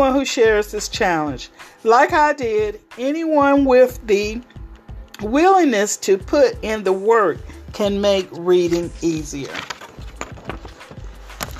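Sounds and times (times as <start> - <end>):
speech: 0.0 - 4.6, 5.2 - 9.8
book page being turned: 8.6 - 11.5.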